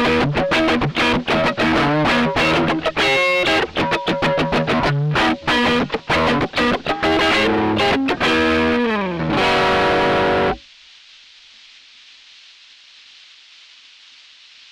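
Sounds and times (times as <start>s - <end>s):
electric guitar neck pickup at various settings: 0.0s - 10.6s.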